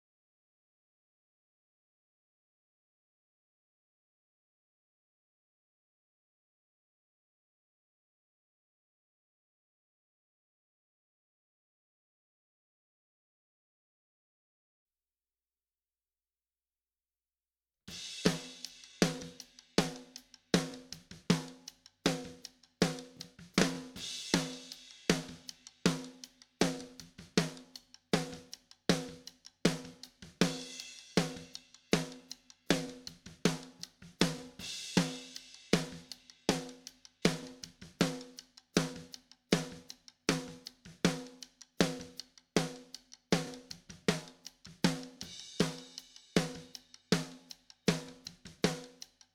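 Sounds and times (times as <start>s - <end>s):
snare drum: 17.9s - 49.1s.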